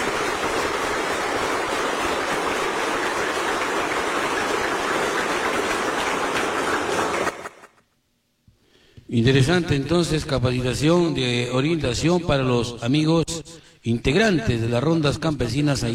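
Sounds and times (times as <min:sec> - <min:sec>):
loud applause: 0:00.0 - 0:07.8
speech: 0:09.1 - 0:15.9.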